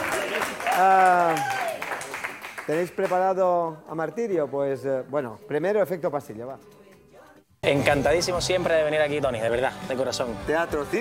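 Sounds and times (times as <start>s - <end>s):
audience applause: 0.0s - 3.2s
speech: 0.8s - 1.5s, 2.7s - 6.8s, 7.6s - 10.9s.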